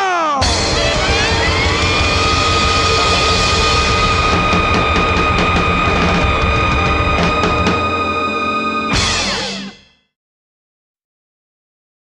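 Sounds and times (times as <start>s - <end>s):
rockabilly blues music: 0.4s - 9.8s.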